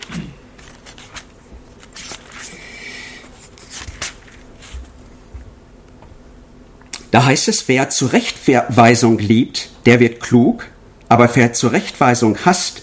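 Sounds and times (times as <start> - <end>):
pages leafing: 0.0 - 2.6, 3.4 - 4.7
speech: 7.2 - 12.8.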